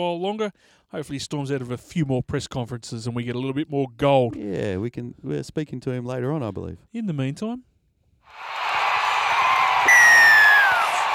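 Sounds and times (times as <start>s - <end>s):
speech: 0.0s - 7.7s
loud whistle sound effect: 9.6s - 11.1s.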